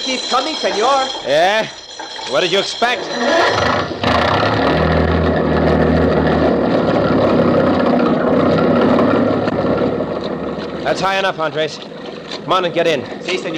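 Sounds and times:
speech: 0:00.1 - 0:04.7, 0:10.9 - 0:13.5
motor engine starting and running: 0:03.0 - 0:13.5.

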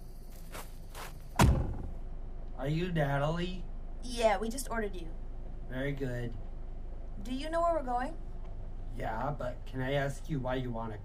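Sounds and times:
car door being closed: 0:01.4 - 0:01.9
speech: 0:02.6 - 0:06.4, 0:07.2 - 0:08.2, 0:09.0 - 0:11.0.

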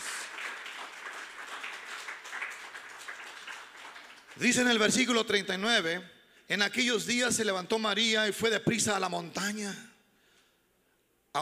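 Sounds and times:
audience applauding: 0:00.0 - 0:05.2
speech: 0:04.4 - 0:09.9.

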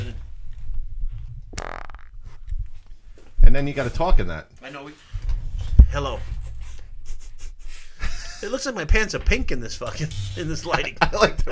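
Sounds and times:
fart: 0:01.5 - 0:02.4
speech: 0:03.5 - 0:05.1, 0:05.9 - 0:06.4, 0:08.4 - 0:11.4
laughter: 0:07.0 - 0:08.7, 0:09.8 - 0:11.4.

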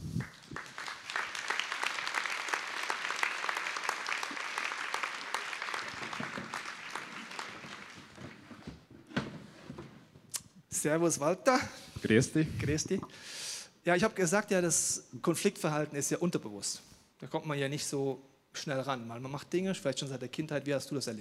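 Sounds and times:
audience applause: 0:00.0 - 0:08.6
speech: 0:10.8 - 0:21.1.

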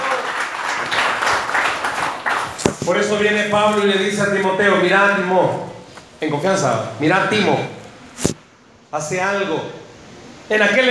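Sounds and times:
audience applause: 0:00.0 - 0:02.6
speech: 0:02.9 - 0:07.8, 0:08.9 - 0:09.8, 0:10.5 - 0:10.8.

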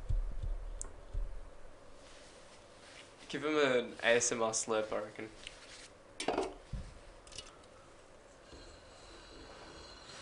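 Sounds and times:
ASMR tapping: 0:00.0 - 0:01.6
speech: 0:03.3 - 0:05.6.

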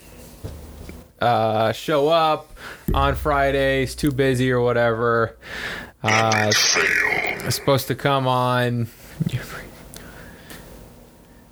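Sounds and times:
speech: 0:01.2 - 0:09.6
heavy nose breathing into the microphone: 0:02.6 - 0:02.9, 0:05.4 - 0:06.0, 0:09.1 - 0:10.7
soft low thumps: 0:02.9 - 0:05.6.

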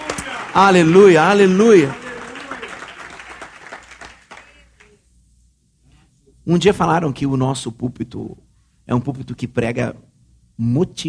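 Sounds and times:
audience applauding: 0:00.0 - 0:05.0
speech: 0:00.5 - 0:02.0, 0:06.4 - 0:11.0.

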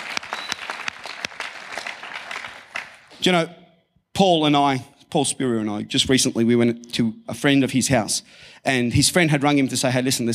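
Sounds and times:
round of applause: 0:00.0 - 0:03.3
speech: 0:03.2 - 0:03.6, 0:04.2 - 0:10.3.

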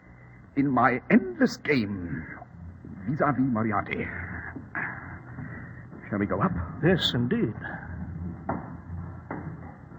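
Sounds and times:
low steady hum: 0:00.0 - 0:09.9
speech: 0:00.6 - 0:02.4, 0:03.1 - 0:04.3, 0:06.1 - 0:07.8
wooden stairway creaking: 0:02.5 - 0:09.9.

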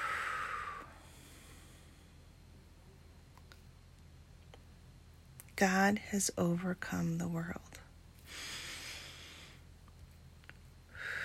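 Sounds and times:
deep breath during a guided scripture meditation: 0:00.0 - 0:02.3, 0:08.2 - 0:09.7, 0:10.9 - 0:11.2
speech: 0:05.6 - 0:07.8.

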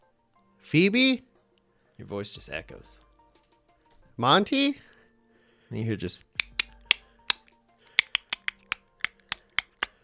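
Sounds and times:
speech: 0:00.6 - 0:01.3, 0:02.0 - 0:03.0, 0:04.2 - 0:04.9, 0:05.7 - 0:06.3
sharp dry clicks: 0:06.4 - 0:10.0.

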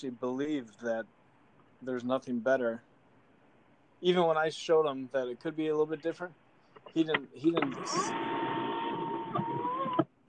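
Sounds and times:
speech: 0:00.0 - 0:01.2, 0:01.8 - 0:02.9, 0:04.0 - 0:08.3
car sunroof motor whirring: 0:07.5 - 0:10.1.

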